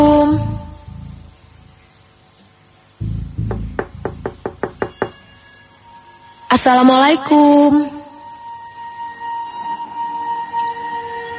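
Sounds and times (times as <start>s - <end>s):
knocking on the front door of a house: 3.0s - 5.2s
speech: 6.6s - 8.0s.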